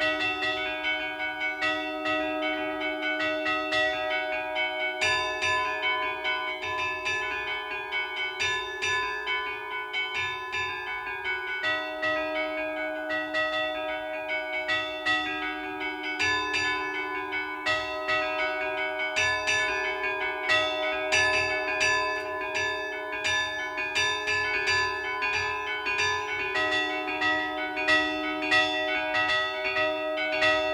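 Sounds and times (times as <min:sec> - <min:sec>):
bells ringing in Glori, Imperia, Liguria: 0:00.0 - 0:30.7.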